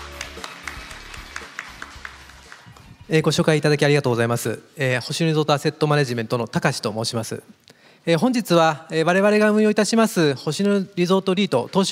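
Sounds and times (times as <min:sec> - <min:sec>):
quiet audience applause: 0:00.0 - 0:03.0
speech: 0:03.1 - 0:11.8.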